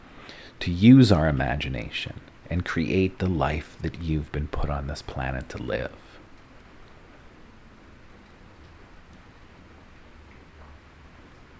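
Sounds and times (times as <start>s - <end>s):
speech: 0.6s - 6.1s
rain falling outside: 6.2s - 11.5s.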